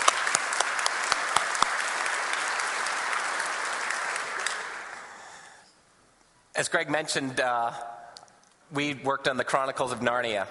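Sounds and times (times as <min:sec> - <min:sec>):
audience applause: 0:00.0 - 0:05.6
speech: 0:06.6 - 0:08.0, 0:08.7 - 0:10.5.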